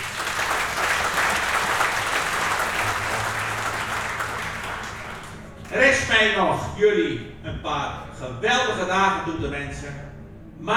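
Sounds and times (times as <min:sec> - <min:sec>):
audience applause: 0:00.0 - 0:06.1
speech: 0:05.7 - 0:10.7.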